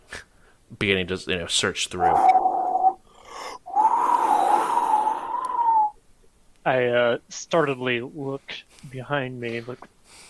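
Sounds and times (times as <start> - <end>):
speech: 0.7 - 2.4, 6.6 - 9.9
eerie whistle: 3.7 - 6.0.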